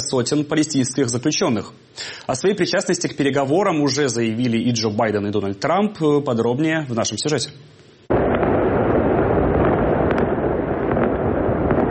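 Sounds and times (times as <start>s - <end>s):
speech: 0.1s - 7.9s
celebratory fireworks booming and crackling: 8.0s - 11.8s.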